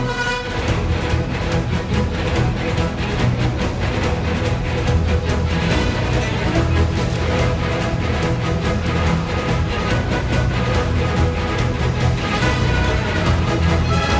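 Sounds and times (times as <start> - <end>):
horse music theme: 0.0 - 14.1.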